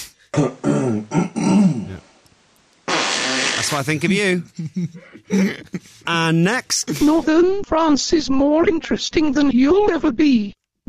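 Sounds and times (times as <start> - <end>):
speech: 0.4 - 0.7, 3.7 - 10.8
fart sound: 2.8 - 3.8.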